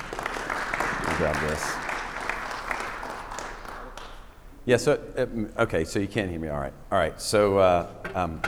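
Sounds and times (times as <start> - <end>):
crowd applauding welcoming a speaker: 0.0 - 4.4
speech: 1.2 - 1.8, 4.7 - 8.4.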